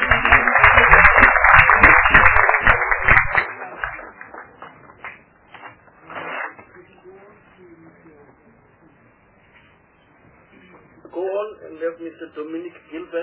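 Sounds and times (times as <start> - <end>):
group applauding: 0.0 - 5.4
speech: 12.2 - 13.2.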